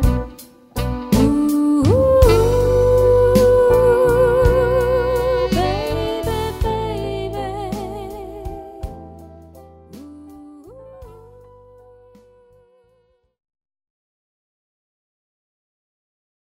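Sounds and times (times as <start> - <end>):
jazz band playing: 0.0 - 10.3.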